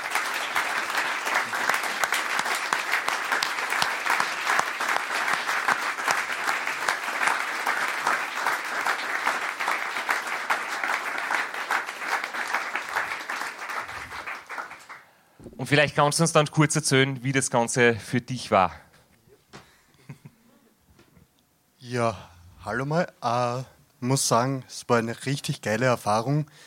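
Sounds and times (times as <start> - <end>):
big round of applause: 0.0 - 15.1
speech: 15.7 - 18.8, 22.0 - 26.6.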